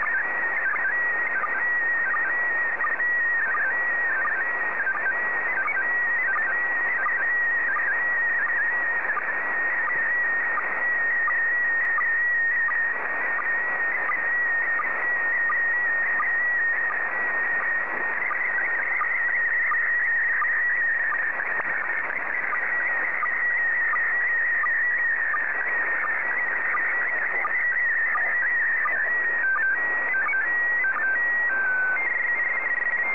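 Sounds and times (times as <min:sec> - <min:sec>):
PD90 slow-scan television signal: 0:00.0 - 0:33.0.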